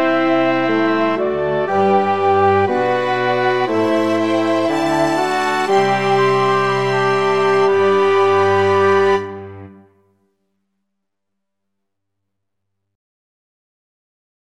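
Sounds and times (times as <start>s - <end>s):
full ensemble playing: 0.0s - 9.9s.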